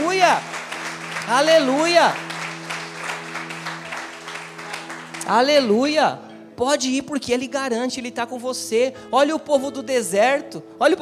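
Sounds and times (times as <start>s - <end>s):
audience applause: 0.0s - 5.3s
speech: 0.3s - 0.6s, 1.3s - 2.3s, 5.3s - 11.0s.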